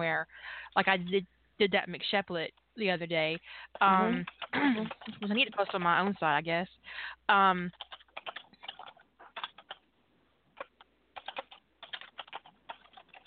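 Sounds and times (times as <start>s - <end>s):
speech: 0.0s - 8.3s
fast typing on a computer keyboard: 4.2s - 6.3s, 7.7s - 9.8s, 10.6s - 13.2s.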